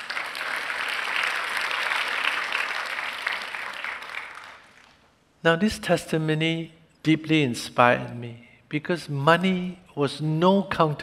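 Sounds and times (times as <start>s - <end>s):
audience clapping: 0.0s - 5.1s
speech: 5.4s - 11.0s.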